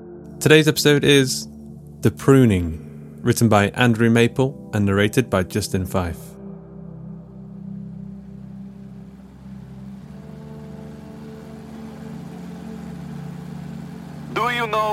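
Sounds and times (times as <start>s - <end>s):
speech: 0.4s - 6.3s
helicopter blades and engine droning: 8.1s - 14.9s.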